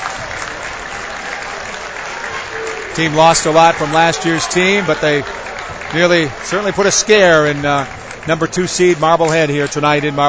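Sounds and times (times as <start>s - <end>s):
crowd applause at a basketball game in Marblehead: 0.0s - 10.2s
speech: 3.0s - 10.2s.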